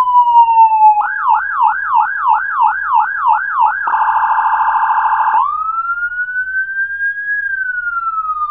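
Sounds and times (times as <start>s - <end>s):
alarm: 0.1s - 8.4s.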